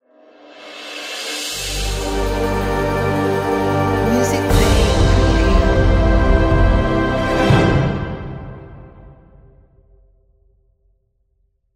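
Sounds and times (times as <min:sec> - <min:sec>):
cinematic logo sting: 0:01.1 - 0:09.6.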